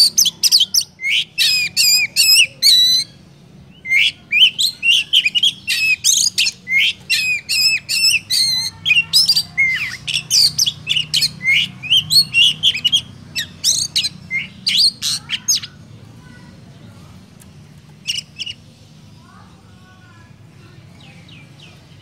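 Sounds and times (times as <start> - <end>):
Oriental magpie-robin song: 0.0 - 15.7.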